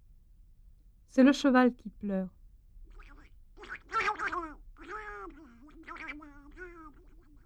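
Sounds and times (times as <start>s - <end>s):
speech: 1.2s - 2.4s
duck quacking: 2.9s - 7.4s.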